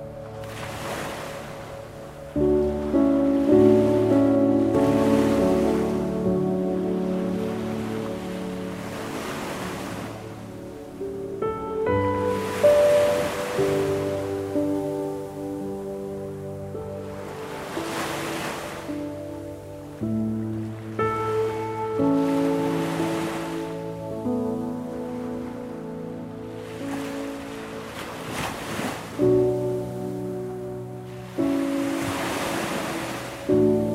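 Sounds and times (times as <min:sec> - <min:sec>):
ocean waves for sleep meditation: 0:00.0 - 0:33.9.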